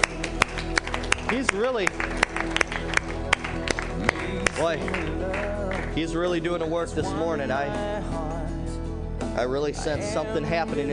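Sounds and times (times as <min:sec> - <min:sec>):
audience hand clapping: 0:00.0 - 0:06.1
speech: 0:01.3 - 0:03.1, 0:04.6 - 0:08.4, 0:09.4 - 0:10.9.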